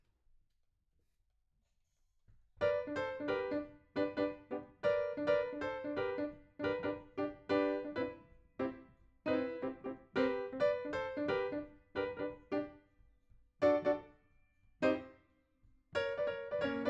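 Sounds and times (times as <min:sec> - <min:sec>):
rock and roll piano: 0:02.6 - 0:12.8, 0:13.6 - 0:14.1, 0:14.8 - 0:15.2, 0:16.0 - 0:16.8.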